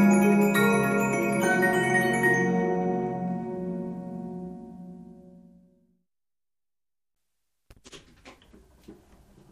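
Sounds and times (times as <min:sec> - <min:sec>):
music box: 0:00.0 - 0:04.0.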